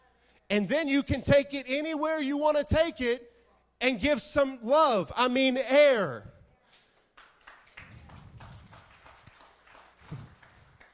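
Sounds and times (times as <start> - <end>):
speech: 0.5 - 6.3
audience slow clap: 6.7 - 10.9.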